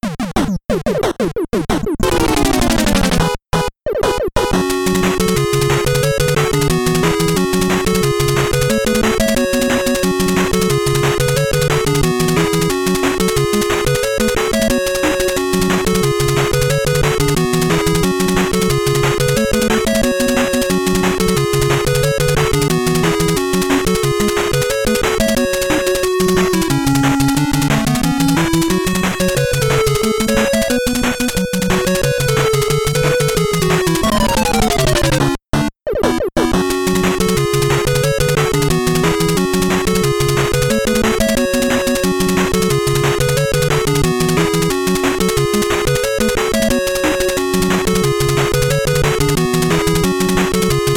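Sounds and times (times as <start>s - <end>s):
retro gaming stage music: 0.1s - 50.9s.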